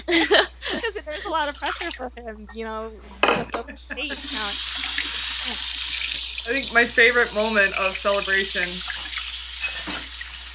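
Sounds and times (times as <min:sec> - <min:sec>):
laughter: 0:00.0 - 0:02.6, 0:03.5 - 0:04.6
speech: 0:01.4 - 0:04.8, 0:06.4 - 0:09.0
running water, washing hands: 0:03.9 - 0:10.5.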